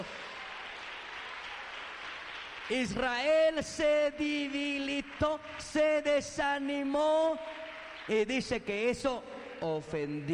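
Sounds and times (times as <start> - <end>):
audience applauding: 0.0 - 10.3
speech: 2.7 - 10.3.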